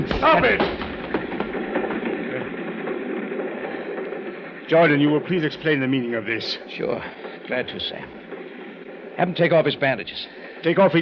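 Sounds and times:
moving train clattering on rails: 0.0s - 11.0s
speech: 0.1s - 0.8s, 4.7s - 8.2s, 9.2s - 11.0s.

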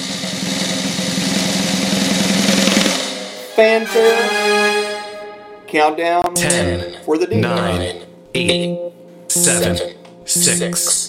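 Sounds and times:
drum roll: 0.0s - 5.0s
speech: 3.6s - 4.8s, 5.7s - 11.0s.

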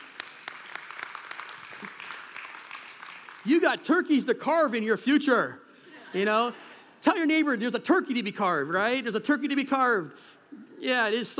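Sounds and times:
audience applause: 0.0s - 3.7s
speech: 3.4s - 11.3s.

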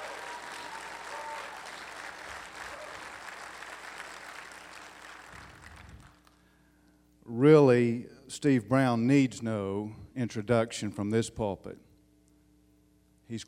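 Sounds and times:
audience applause: 0.0s - 6.3s
speech: 7.4s - 11.8s.

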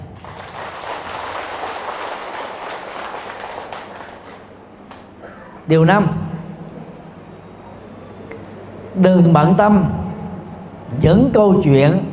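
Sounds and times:
audience applause: 0.0s - 4.8s
speech: 5.7s - 6.3s, 9.0s - 10.0s, 11.0s - 12.1s.

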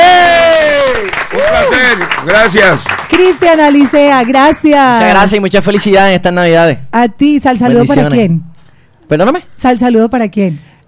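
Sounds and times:
person whooping and cheering: 0.0s - 1.9s
crowd applause: 0.0s - 4.0s
speech: 1.9s - 8.5s, 9.1s - 10.8s.

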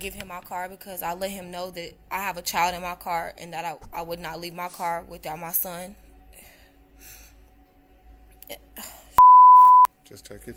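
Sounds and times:
speech: 0.0s - 6.0s, 10.1s - 10.5s
loud beeping: 9.2s - 9.9s.

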